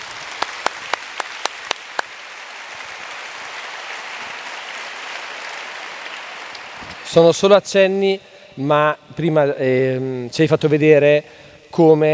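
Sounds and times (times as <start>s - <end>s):
audience applause: 0.0s - 7.1s
speech: 7.0s - 12.1s.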